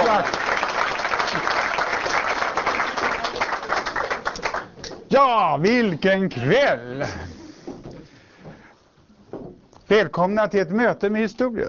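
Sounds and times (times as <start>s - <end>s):
audience applause: 0.0s - 4.8s
speech: 0.2s - 0.4s, 5.1s - 7.3s, 9.9s - 11.6s.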